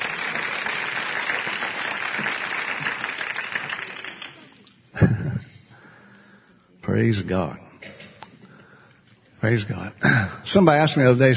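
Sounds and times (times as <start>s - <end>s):
audience applause: 0.0s - 5.1s
speech: 7.0s - 7.6s, 9.4s - 11.3s.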